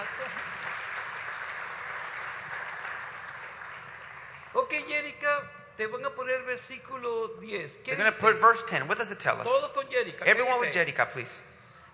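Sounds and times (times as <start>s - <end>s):
audience applause at a bilingual Spanish-English scripture reading: 0.0s - 4.7s
speech: 4.6s - 11.5s.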